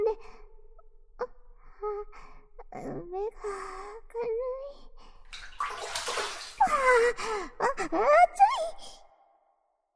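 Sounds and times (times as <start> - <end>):
speech: 2.0 - 4.6, 6.9 - 8.4
water splashing as a face is washed: 5.3 - 6.9.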